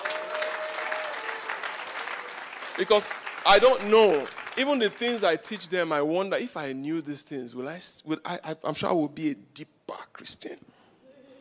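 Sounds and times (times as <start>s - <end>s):
crowd applause: 0.0s - 5.7s
speech: 2.8s - 10.7s.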